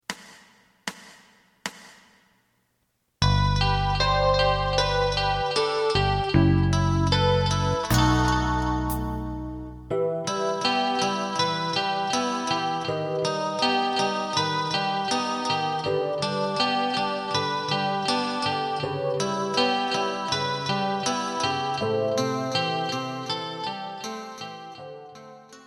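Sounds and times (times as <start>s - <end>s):
lead melody: 3.2s - 22.9s.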